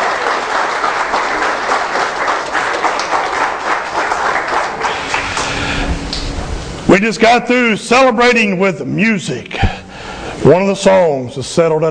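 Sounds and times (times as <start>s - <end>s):
audience applause: 0.0s - 6.3s
speech: 7.0s - 9.7s, 10.4s - 11.8s.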